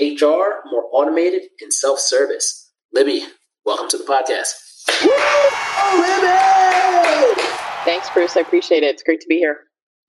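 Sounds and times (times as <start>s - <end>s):
speech: 0.0s - 10.0s
high whoop: 4.9s - 8.6s
crowd applause and cheering welcoming a podcast guest: 4.9s - 8.8s.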